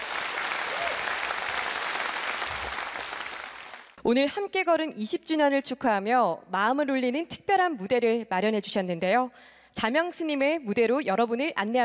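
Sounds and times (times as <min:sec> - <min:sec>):
audience applause: 0:00.0 - 0:04.0
speech: 0:04.0 - 0:11.8.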